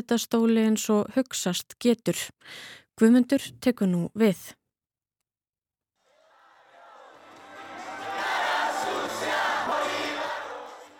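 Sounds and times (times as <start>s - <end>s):
speech: 0.0s - 4.6s
large crowd singing and cheering in the streets: 6.1s - 10.9s.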